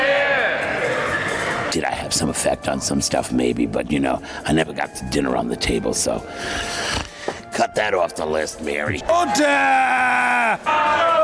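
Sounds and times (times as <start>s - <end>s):
members of parliament shouting: 0.0s - 1.4s, 9.1s - 11.2s
speech: 1.7s - 11.2s.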